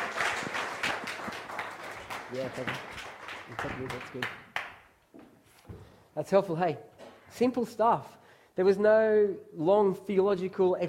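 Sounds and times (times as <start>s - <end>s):
audience clapping: 0.0s - 5.0s
speech: 2.3s - 4.4s, 6.2s - 10.8s.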